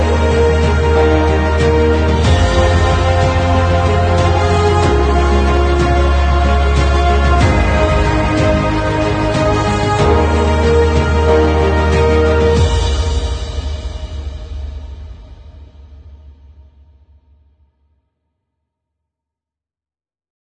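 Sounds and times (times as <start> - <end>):
dynamic epic cinematic music: 0.0 - 15.7.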